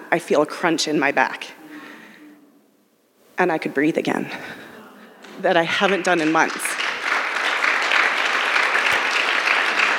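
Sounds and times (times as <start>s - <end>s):
speech: 0.1s - 1.6s, 3.4s - 4.6s, 5.4s - 6.8s
audience clapping: 5.2s - 9.9s.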